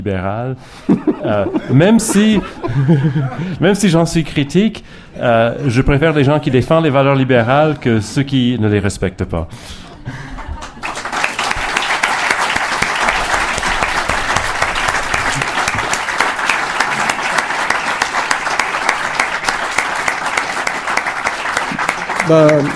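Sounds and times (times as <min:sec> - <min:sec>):
speech: 0:00.0 - 0:10.2, 0:22.3 - 0:22.7
laughter: 0:00.9 - 0:03.8, 0:10.0 - 0:11.1
audience applause: 0:10.2 - 0:22.7.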